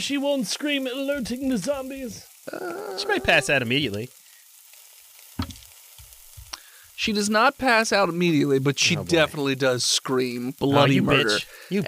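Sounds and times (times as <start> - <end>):
speech: 0.0 - 4.2, 7.0 - 11.8
flesh sizzling on a hot plate: 0.0 - 11.8
soft low thump: 5.4 - 5.6.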